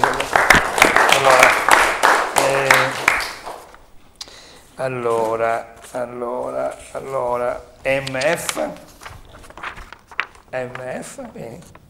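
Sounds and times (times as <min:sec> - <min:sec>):
audience applause: 0:00.0 - 0:03.7
speech: 0:04.8 - 0:08.9, 0:10.5 - 0:11.8.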